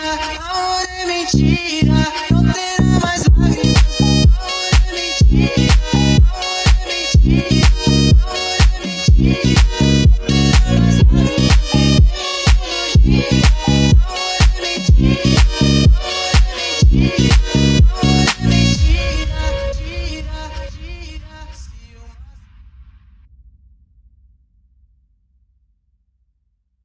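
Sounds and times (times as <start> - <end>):
mega funk music: 1.3 - 20.3.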